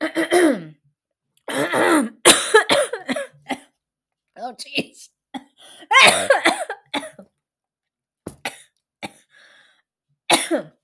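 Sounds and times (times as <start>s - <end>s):
person coughing after choking on saliva: 0.0s - 0.8s, 1.5s - 3.7s, 4.8s - 7.2s, 10.3s - 10.8s.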